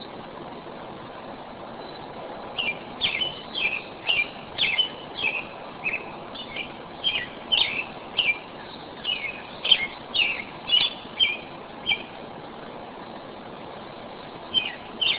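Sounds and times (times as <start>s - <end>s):
robin singing: 2.5s - 12.2s, 14.4s - 15.1s.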